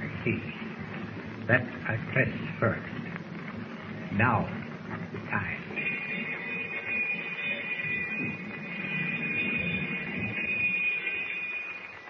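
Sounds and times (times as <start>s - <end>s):
low rumbling mechanical hum: 0.0s - 12.0s
speech: 0.2s - 0.6s, 1.5s - 3.0s, 4.1s - 5.8s
submarine alarm bell ringing: 5.7s - 12.0s.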